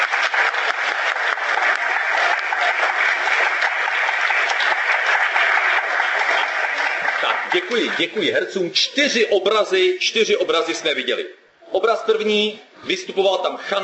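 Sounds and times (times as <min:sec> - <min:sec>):
audience applause for the actors: 0:00.0 - 0:08.3
speech: 0:07.5 - 0:13.8.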